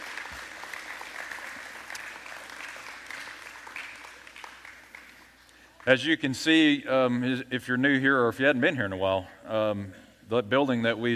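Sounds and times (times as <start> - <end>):
audience clapping for children: 0.0 - 6.0
speech: 5.8 - 11.1.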